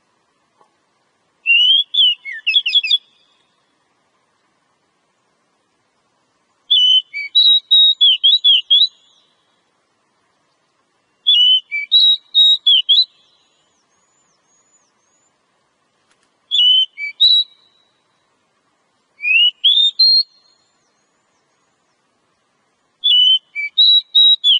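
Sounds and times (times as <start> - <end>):
Oriental magpie-robin singing whistled phrases: 1.4 - 3.4, 6.7 - 9.3, 11.0 - 15.3, 16.5 - 18.2, 19.2 - 21.7, 23.0 - 24.5.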